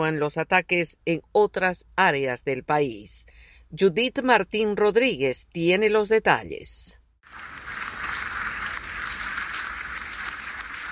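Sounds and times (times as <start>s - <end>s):
speech: 0.0s - 7.5s
standing ovation applause in parliament: 7.3s - 10.9s.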